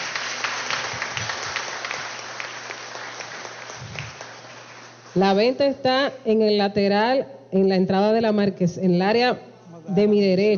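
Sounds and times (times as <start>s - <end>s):
audience applause for the godparents: 0.0s - 5.2s
speech: 5.2s - 10.5s.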